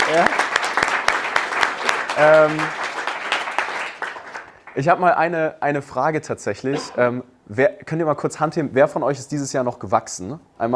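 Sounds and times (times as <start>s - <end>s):
crowd applause: 0.0s - 4.8s
speech: 0.1s - 0.5s, 2.2s - 2.8s, 4.8s - 10.7s.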